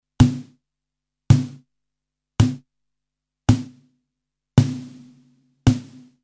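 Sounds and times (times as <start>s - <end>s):
snare drum: 0.2s - 0.6s, 1.3s - 1.6s, 2.4s - 2.6s, 3.5s - 3.8s, 4.6s - 6.2s.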